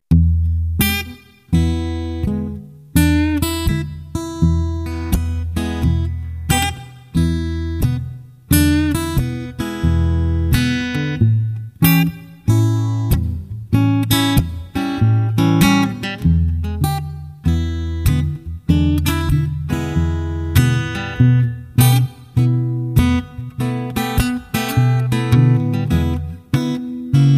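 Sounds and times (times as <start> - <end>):
slow blues guitar: 0.0 - 27.3.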